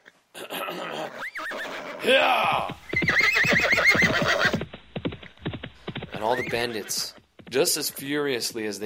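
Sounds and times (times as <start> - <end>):
horse whinnying: 0.6 - 4.7, 5.8 - 7.2
horse hooves galloping: 1.5 - 8.8
speech: 2.0 - 2.8, 6.3 - 8.8.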